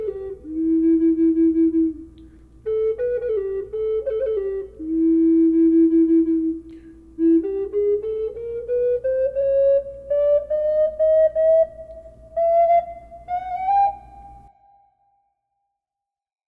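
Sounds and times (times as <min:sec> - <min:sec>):
flute in E minor with reverb: 0:00.0 - 0:15.4.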